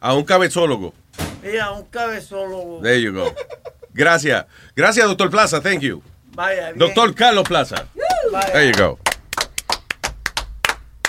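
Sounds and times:
speech: 0.0s - 9.0s
sparse applause: 7.4s - 11.0s.

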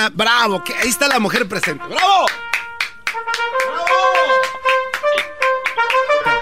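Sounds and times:
speech: 0.0s - 2.6s
loud sustained brass-like notes: 0.3s - 6.4s
applause sound effect: 1.4s - 6.4s.

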